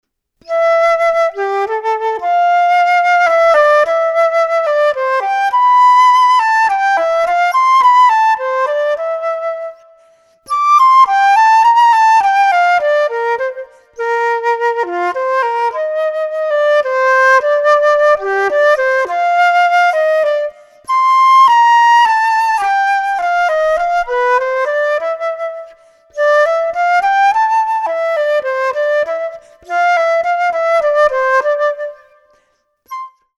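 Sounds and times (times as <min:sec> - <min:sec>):
flute: 0:00.4 - 0:33.3.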